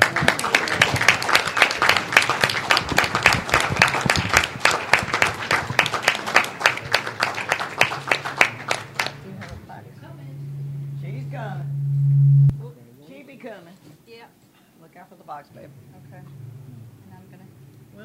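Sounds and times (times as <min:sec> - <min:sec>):
audience applauding: 0:00.0 - 0:09.6.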